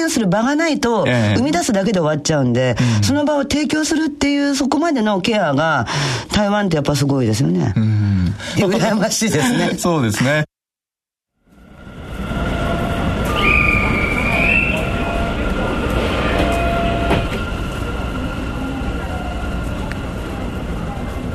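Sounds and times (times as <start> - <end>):
speech: 0.0 - 10.5
MRT airport line metro train running: 11.5 - 21.3.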